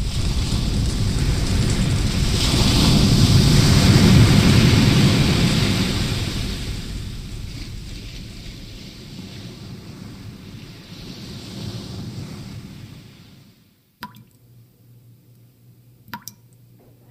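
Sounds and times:
ocean surf breaking on shore: 0.0 - 13.6
sharp click: 16.1 - 16.4.

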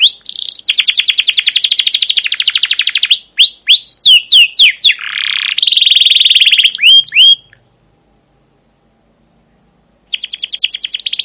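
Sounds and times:
captive canary chirping song: 0.0 - 8.0, 10.0 - 11.2.

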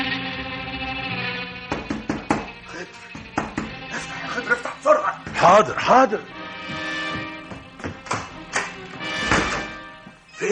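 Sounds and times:
sustained humming musical drone: 0.0 - 10.5
heavy loud knocking on a door: 1.7 - 3.8, 5.2 - 5.7, 6.7 - 8.4
laughter: 3.9 - 5.9
speech: 4.5 - 6.4.

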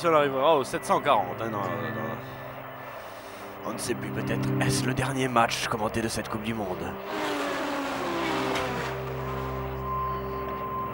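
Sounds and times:
speech: 0.0 - 2.4, 3.6 - 7.5
Formula 1 racing car engine roaring: 6.6 - 10.3.

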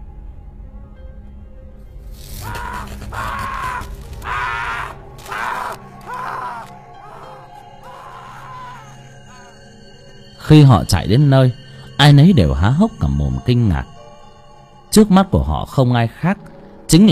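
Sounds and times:
agonized human scream: 2.4 - 9.6
speech: 10.5 - 13.9, 14.9 - 17.0.

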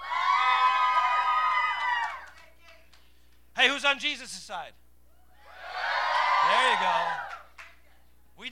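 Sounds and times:
audience cheering and shouting: 0.0 - 2.3, 5.4 - 7.5
speech: 3.6 - 4.8, 6.6 - 7.2.

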